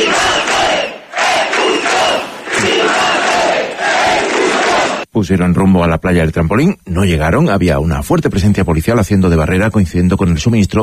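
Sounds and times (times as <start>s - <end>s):
protesters cheering and chanting: 0.0s - 5.0s
speech: 5.2s - 10.8s.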